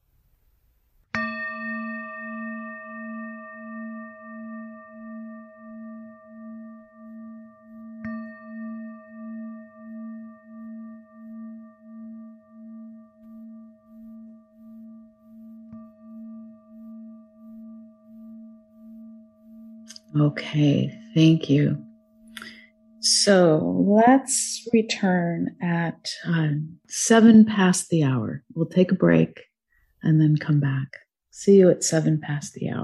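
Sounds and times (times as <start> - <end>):
meditation bell ringing: 1.1 - 23.5
speech: 20.1 - 21.9, 23.1 - 32.8.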